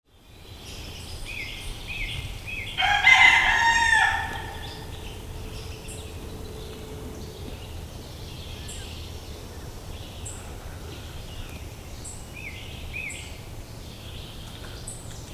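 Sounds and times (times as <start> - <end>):
rooster crowing: 2.7 - 7.4.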